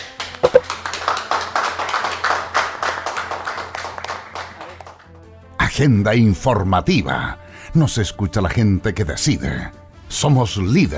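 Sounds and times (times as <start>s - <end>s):
applause for the medical team of Hospital de Mejillón: 0.0s - 5.3s
speech: 5.8s - 10.9s.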